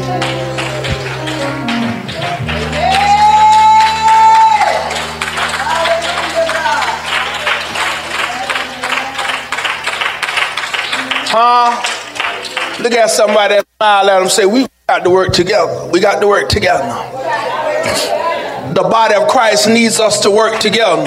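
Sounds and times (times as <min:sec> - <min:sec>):
audience clapping: 0:00.0 - 0:13.6, 0:20.0 - 0:21.0
speech: 0:00.1 - 0:00.4, 0:12.9 - 0:21.0.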